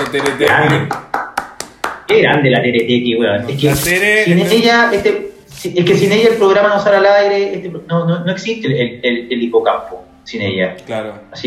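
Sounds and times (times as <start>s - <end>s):
applause: 0.0s - 2.1s
speech: 0.1s - 1.0s, 2.1s - 11.4s.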